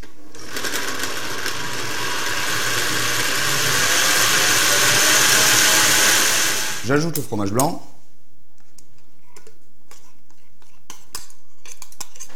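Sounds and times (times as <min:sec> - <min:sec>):
blender mixing ingredients: 0:00.0 - 0:06.9
speech: 0:06.9 - 0:07.9.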